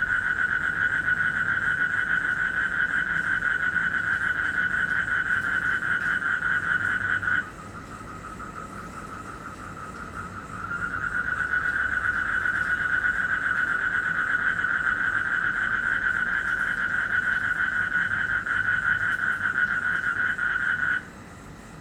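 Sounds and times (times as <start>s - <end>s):
frog trilling in Indonesia: 0.0s - 21.0s.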